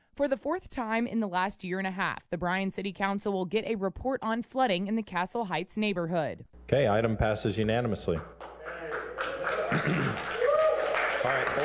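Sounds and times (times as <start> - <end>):
speech: 0.2 - 8.3, 9.7 - 10.4, 11.2 - 11.6
faint clapping: 8.2 - 11.6
property owners cheering in city council chambers: 8.4 - 11.6
people chuckling: 9.3 - 10.4.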